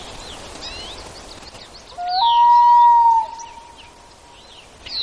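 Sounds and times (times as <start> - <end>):
common loon with punctuated calls: 2.0 - 4.2.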